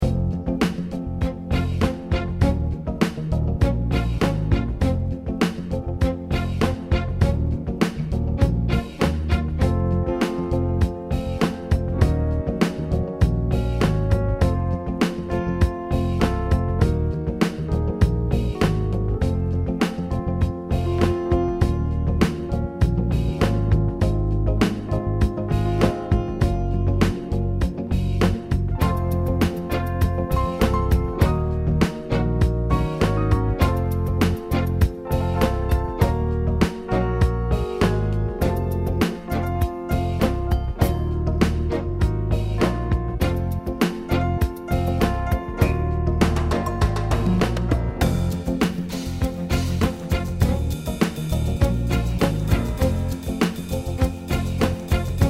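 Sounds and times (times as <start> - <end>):
ballade music: 0.0 - 55.2.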